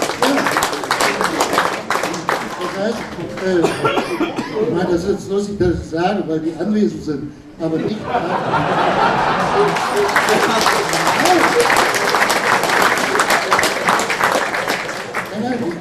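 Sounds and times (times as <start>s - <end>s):
audience clapping: 0.0s - 3.9s, 9.0s - 15.7s
speech: 2.8s - 4.2s, 4.8s - 11.9s
laughter: 3.4s - 5.0s, 7.7s - 14.1s.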